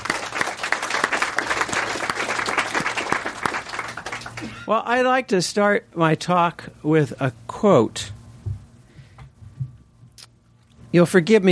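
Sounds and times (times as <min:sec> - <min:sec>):
audience applause: 0:00.0 - 0:04.7
speech: 0:04.4 - 0:08.2, 0:10.9 - 0:11.4.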